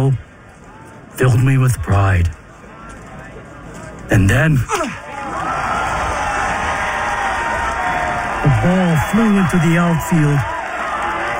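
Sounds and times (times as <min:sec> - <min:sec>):
speech: 0:00.0 - 0:00.2, 0:01.2 - 0:02.4, 0:04.1 - 0:04.9, 0:08.6 - 0:10.5
crowd cheering at baseball game: 0:00.1 - 0:01.2, 0:02.4 - 0:11.3
shouts and whoops: 0:04.7 - 0:11.3.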